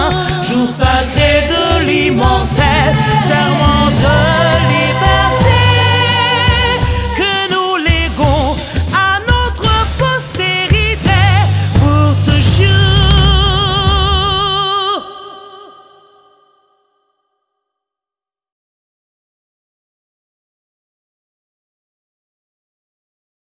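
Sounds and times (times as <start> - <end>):
national anthem sung: 0.0 - 16.7.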